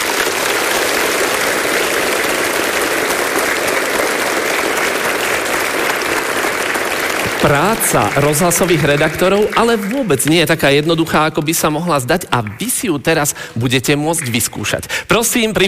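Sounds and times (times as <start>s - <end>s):
audience applause: 0.0s - 15.6s
speech: 7.4s - 15.6s.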